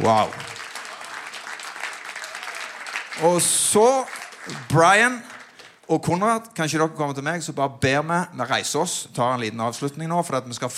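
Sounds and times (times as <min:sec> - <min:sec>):
speech: 0:00.0 - 0:00.4, 0:03.2 - 0:05.3, 0:05.9 - 0:10.7
audience applause in church: 0:00.0 - 0:05.8.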